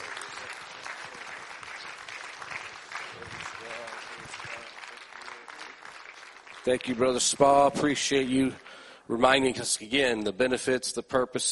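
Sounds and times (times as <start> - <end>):
audience clapping hands in praise: 0.0 - 8.9
speech: 6.6 - 11.5.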